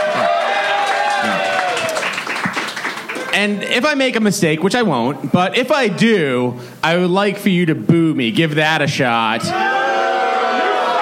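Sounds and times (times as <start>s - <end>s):
audience cheering: 0.0s - 3.5s, 9.5s - 10.9s
speech: 3.4s - 9.8s.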